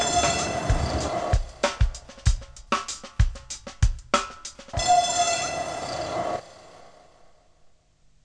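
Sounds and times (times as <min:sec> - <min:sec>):
ambient music: 0:00.0 - 0:03.1, 0:04.6 - 0:07.2.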